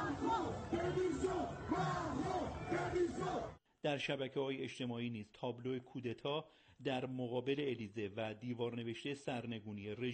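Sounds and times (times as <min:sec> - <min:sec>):
street crowd chanting a protest slogan: 0:00.0 - 0:03.6
speech: 0:02.9 - 0:10.1.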